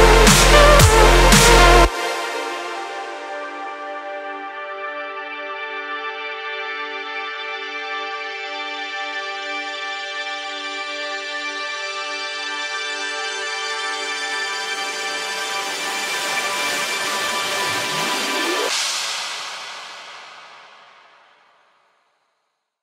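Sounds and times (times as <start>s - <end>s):
glitch hop music: 0.0s - 4.2s, 15.7s - 20.6s.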